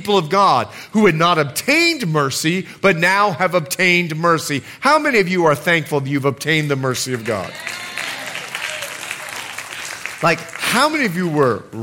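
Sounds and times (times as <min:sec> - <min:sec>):
speech: 0:00.0 - 0:07.9, 0:10.2 - 0:11.8
audience clapping: 0:07.1 - 0:11.7.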